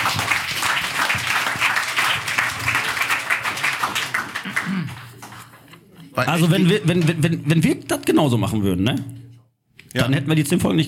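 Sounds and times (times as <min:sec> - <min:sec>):
applause: 0:00.0 - 0:05.6
speech: 0:06.2 - 0:09.2, 0:10.0 - 0:10.8.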